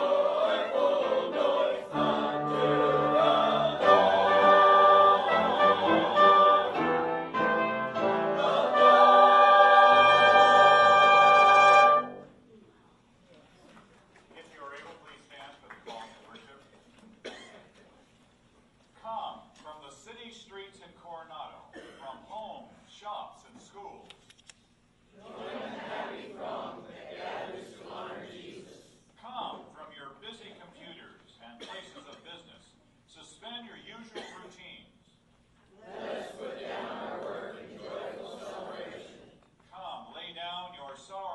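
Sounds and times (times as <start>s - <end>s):
brass instruments: 0.0s - 12.4s
piano: 1.0s - 12.3s.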